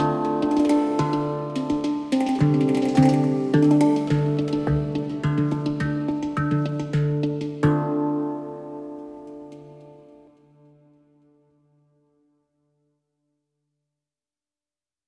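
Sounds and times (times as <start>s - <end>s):
handpan playing: 0.0s - 10.3s.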